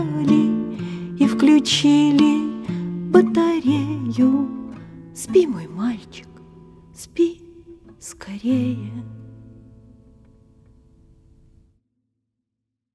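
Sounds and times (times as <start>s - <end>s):
lullaby: 0.0s - 9.2s.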